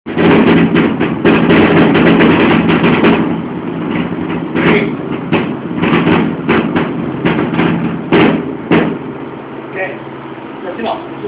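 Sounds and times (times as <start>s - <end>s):
thunder: 0.1s - 9.2s.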